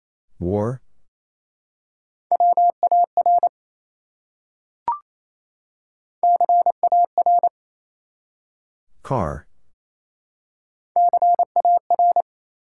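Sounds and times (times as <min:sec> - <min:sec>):
speech: 0:00.4 - 0:00.8, 0:09.1 - 0:09.5
Morse code tones at 28 words per minute: 0:02.3 - 0:03.5, 0:06.2 - 0:07.5, 0:11.0 - 0:12.2.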